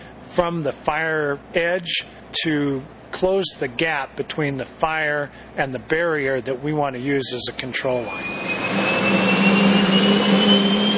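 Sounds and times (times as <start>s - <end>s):
speech: 0.3s - 9.5s
Hercules C-130 transport plane engine roar: 8.0s - 10.9s.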